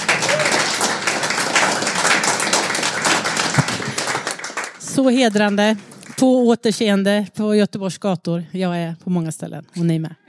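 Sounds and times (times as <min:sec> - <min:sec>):
audience applause: 0:00.0 - 0:06.2
speech: 0:05.0 - 0:10.2.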